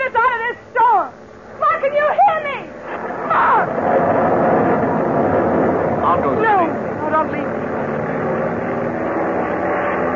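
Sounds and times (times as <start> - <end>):
airplane engine droning: 0.0 - 10.1.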